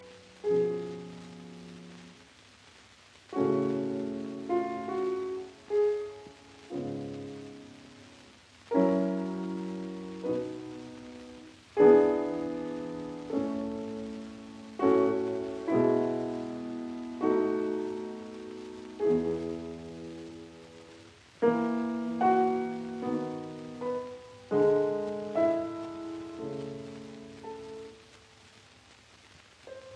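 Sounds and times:
piano sonata adagio in C major: 0.0s - 2.3s, 3.3s - 28.6s, 29.5s - 29.9s.

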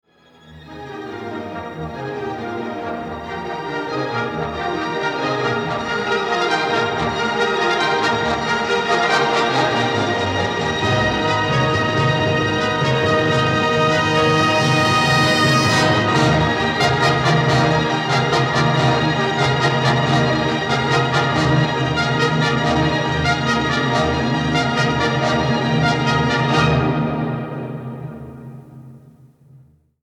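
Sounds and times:
orchestral symphony scherzo: 0.3s - 29.0s.

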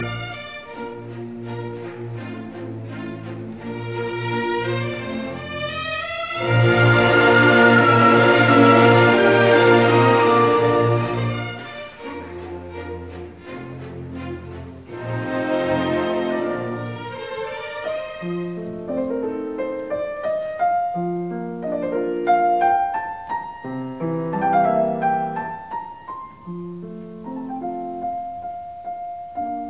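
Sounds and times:
piano concerto, romance movement: 0.0s - 29.6s.

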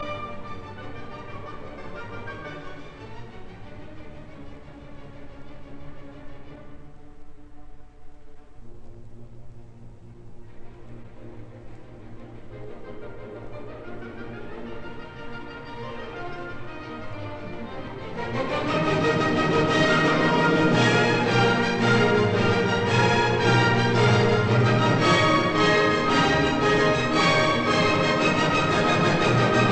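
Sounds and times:
symphony scherzo in E flat major: 0.0s - 29.7s.

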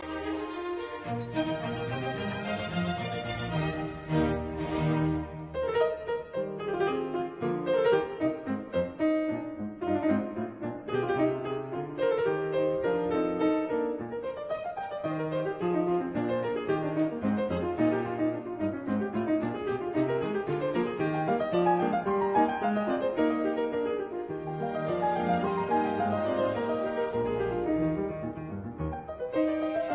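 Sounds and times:
piano concerto in E flat major: 0.0s - 29.9s.

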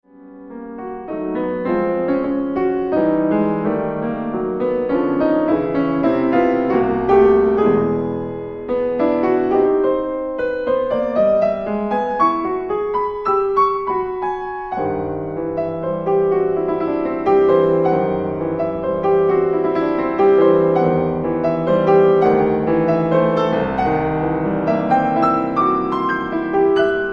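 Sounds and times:
andante piano prelude: 0.0s - 27.1s.

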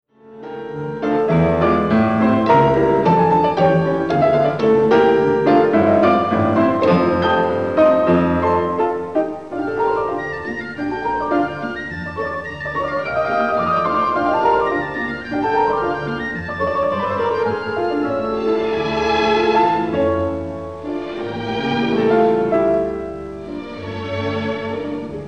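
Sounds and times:
piano concerto movement: 0.1s - 25.2s.

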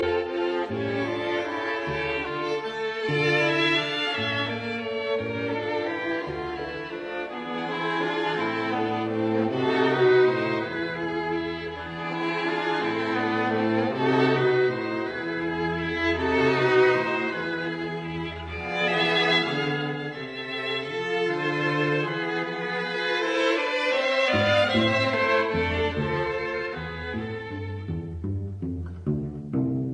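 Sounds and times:
string quartet playing: 0.0s - 29.9s.

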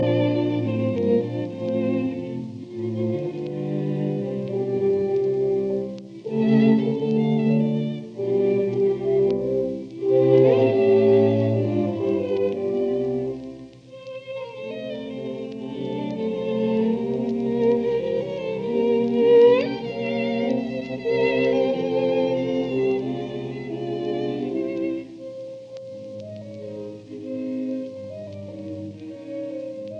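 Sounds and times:
chamber octet minuet: 0.0s - 29.9s.

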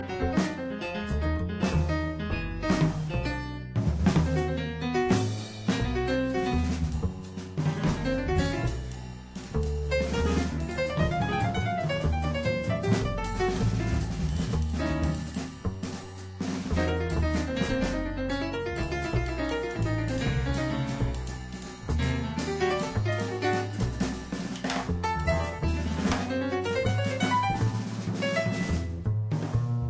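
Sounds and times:
musical trio: 0.0s - 29.8s.

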